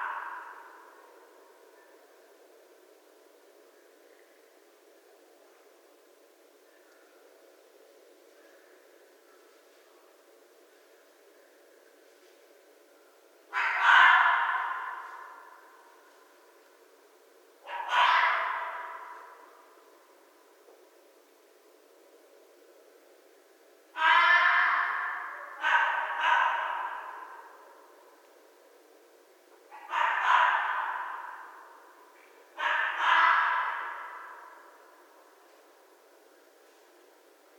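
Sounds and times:
Red fox screaming: 0:00.0 - 0:00.8, 0:13.5 - 0:15.7, 0:17.7 - 0:19.5, 0:24.0 - 0:27.7, 0:29.7 - 0:31.8, 0:32.6 - 0:34.9.

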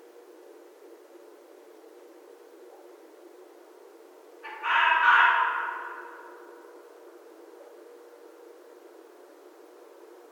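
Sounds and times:
red fox call: 0:04.4 - 0:06.5.

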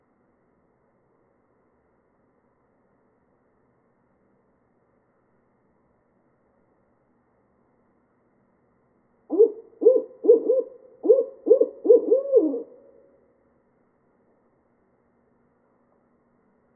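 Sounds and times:
barred owl hooting: 0:09.3 - 0:13.2.

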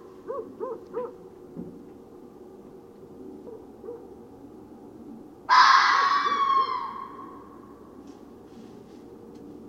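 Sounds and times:
red fox giving harsh hoarse screams: 0:05.5 - 0:07.4.

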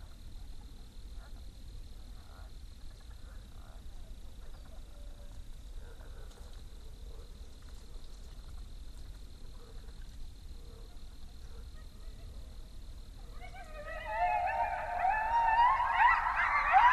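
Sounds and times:
coyotes howling: 0:13.2 - 0:16.9.

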